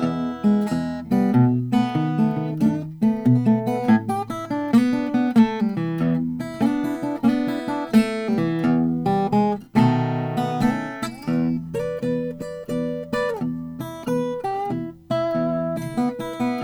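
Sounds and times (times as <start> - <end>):
Lowden WL50 acoustic guitar: 0.0 - 16.6.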